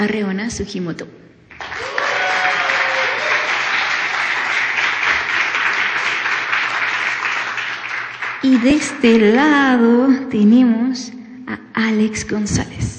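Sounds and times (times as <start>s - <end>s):
speech: 0.0s - 1.8s, 8.4s - 12.9s
audience applause: 1.5s - 8.8s.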